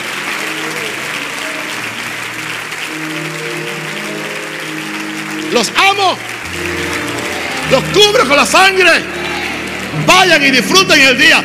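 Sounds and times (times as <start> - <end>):
audience applause: 0.0 - 11.4
sustained tones: 2.5 - 11.4
speech: 5.5 - 9.2, 9.9 - 11.4.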